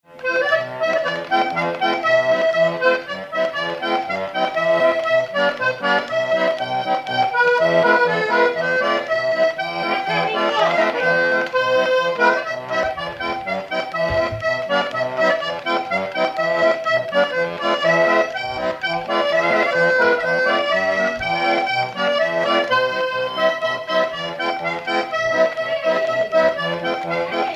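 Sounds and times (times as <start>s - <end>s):
accordion: 0.0s - 27.5s.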